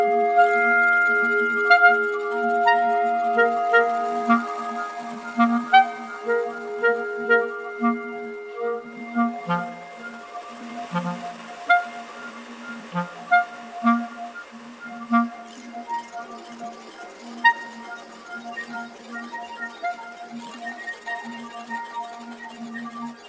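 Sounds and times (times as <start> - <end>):
bass clarinet: 0.0 - 10.2, 10.8 - 14.3
B-flat clarinet: 0.0 - 23.2.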